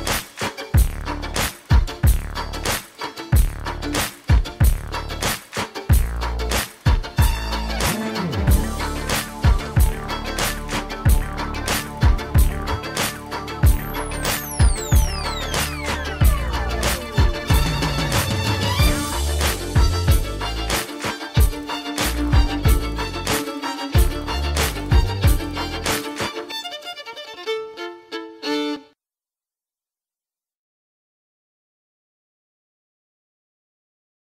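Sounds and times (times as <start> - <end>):
floor exercise music: 0.0 - 26.6.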